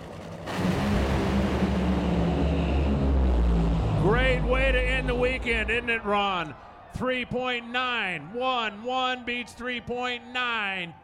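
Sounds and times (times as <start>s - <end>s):
nitro funny cars and top fuel dragsters roaring: 0.0s - 6.6s
speech: 4.2s - 11.0s.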